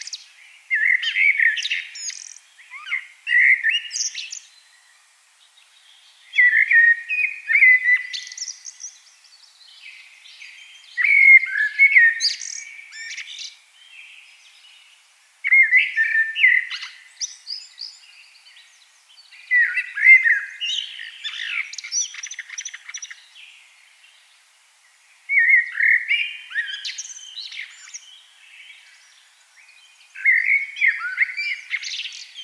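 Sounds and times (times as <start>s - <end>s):
common blackbird singing: 0.0s - 4.9s, 5.8s - 23.7s, 25.3s - 32.4s.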